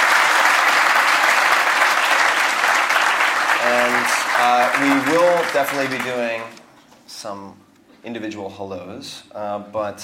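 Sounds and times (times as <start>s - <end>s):
live audience applauding a guest speaker: 0.0s - 6.6s
speech: 3.7s - 10.0s.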